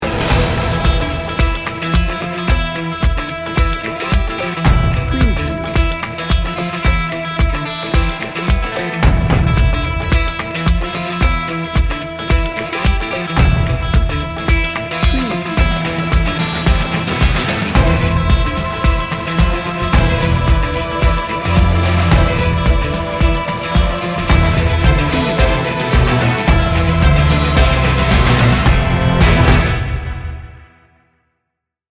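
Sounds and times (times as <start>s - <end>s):
epic and determined music: 0.0s - 31.0s.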